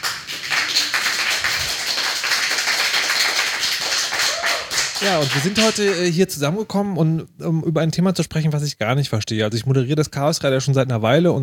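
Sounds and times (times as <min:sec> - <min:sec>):
audience applause: 0:00.0 - 0:06.0
speech: 0:05.0 - 0:11.4.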